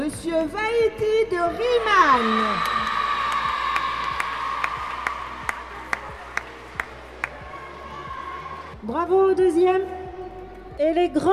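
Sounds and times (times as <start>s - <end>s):
speech: 0.3s - 2.8s, 8.9s - 10.0s, 10.8s - 11.3s
audience clapping at a school tournament award ceremony: 2.5s - 7.5s.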